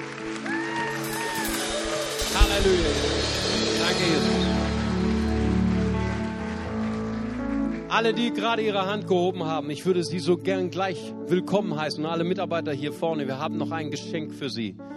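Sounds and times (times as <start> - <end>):
applause: 0.0 - 9.3
speech: 2.5 - 4.6, 7.9 - 14.9.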